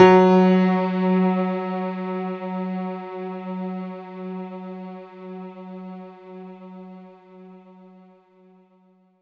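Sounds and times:
synth note: 0.0s - 4.5s.

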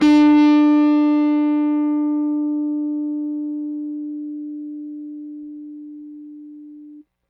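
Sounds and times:
Rickenbacker bass guitar: 0.0s - 7.0s.

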